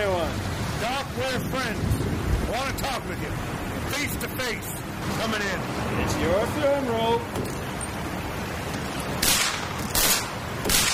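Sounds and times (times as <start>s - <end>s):
constant rush: 0.0s - 10.9s
speech: 2.6s - 7.5s
gunshots in a radio drama: 9.2s - 10.9s.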